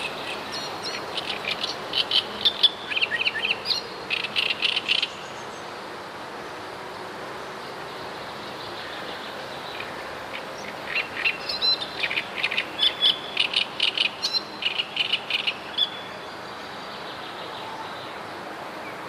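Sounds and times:
great reed warbler song: 0:00.0 - 0:05.5, 0:08.4 - 0:18.1.

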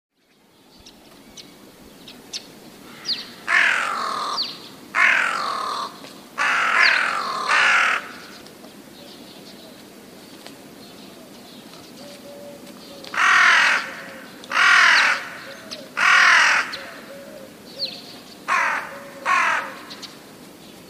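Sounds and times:
rook cawing: 0:02.8 - 0:08.4, 0:13.0 - 0:17.6, 0:18.5 - 0:20.2.

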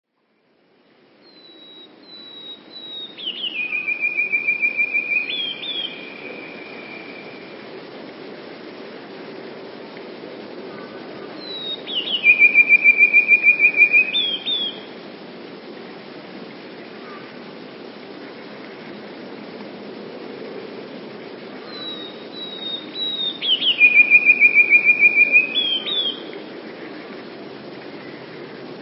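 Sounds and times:
Eurasian blue tit singing: 0:01.3 - 0:06.3, 0:11.4 - 0:14.9, 0:21.8 - 0:26.4.

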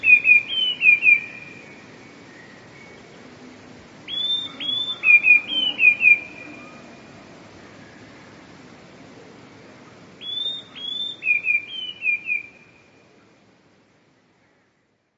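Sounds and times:
Eurasian blue tit singing high notes and trills: 0:00.0 - 0:03.2, 0:04.1 - 0:07.2, 0:10.2 - 0:13.0.

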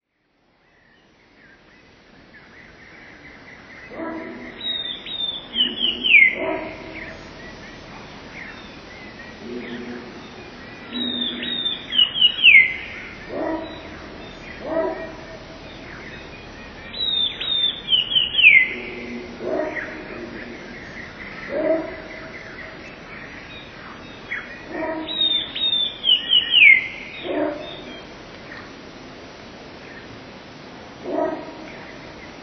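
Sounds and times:
Eurasian blue tit song: 0:04.2 - 0:28.1.

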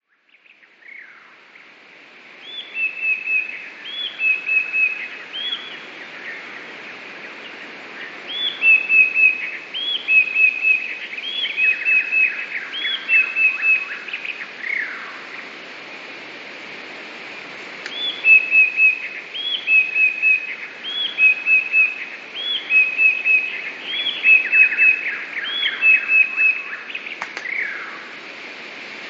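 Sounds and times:
Eurasian blue tit whistling song: 0:02.4 - 0:06.4, 0:08.0 - 0:15.0, 0:17.9 - 0:27.9
faint clicks: 0:27.2 - 0:27.5.

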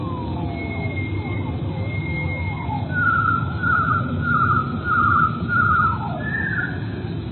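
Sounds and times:
Eurasian blue tit song: 0:00.1 - 0:07.2.

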